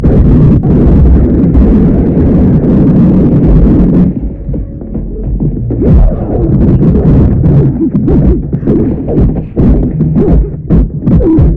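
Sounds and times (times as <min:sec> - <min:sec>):
noise: 0:00.0 - 0:11.5.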